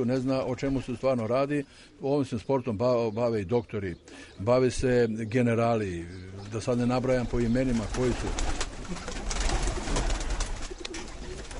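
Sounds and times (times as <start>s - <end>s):
speech: 0.0s - 9.1s
sport pigeons kept for flight competitions cooing: 3.9s - 4.6s, 6.0s - 11.5s.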